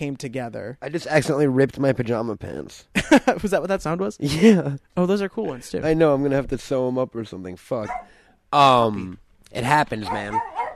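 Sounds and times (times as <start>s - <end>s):
speech: 0.0s - 10.7s
upset dog giving a whining yelp-like bark: 7.8s - 8.1s, 10.1s - 10.7s.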